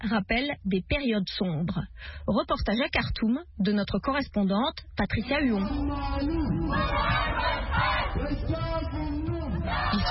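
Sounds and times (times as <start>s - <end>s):
speech: 0.0s - 10.0s
protesters shouting and chanting in the street: 5.2s - 10.0s.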